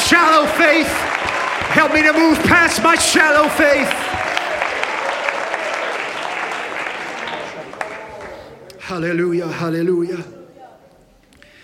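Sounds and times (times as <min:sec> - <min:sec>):
audience clapping: 0:00.0 - 0:08.8
speech: 0:00.1 - 0:04.2, 0:08.9 - 0:10.4.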